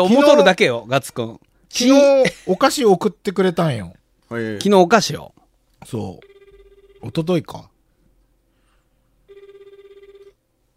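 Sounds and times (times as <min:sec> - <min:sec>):
speech: 0:00.0 - 0:06.3, 0:07.0 - 0:07.7
telephone call ringing: 0:06.2 - 0:07.3, 0:09.3 - 0:10.4.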